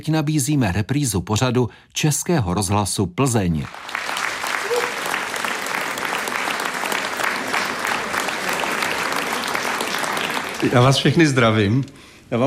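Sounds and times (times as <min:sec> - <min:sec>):
speech: 0:00.0 - 0:04.1, 0:10.6 - 0:12.4
audience applause: 0:03.7 - 0:11.6.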